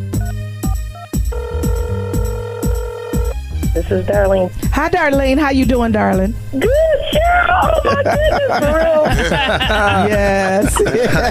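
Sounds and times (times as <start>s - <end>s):
telephone ringing as a call is dialed: 1.3s - 3.4s
speech: 3.9s - 11.2s
laughter: 7.2s - 11.2s.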